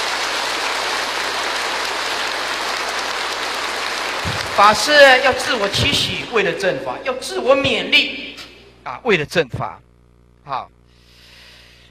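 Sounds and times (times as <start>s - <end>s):
audience applause: 0.0s - 6.7s
speech: 4.6s - 8.2s, 8.8s - 10.8s.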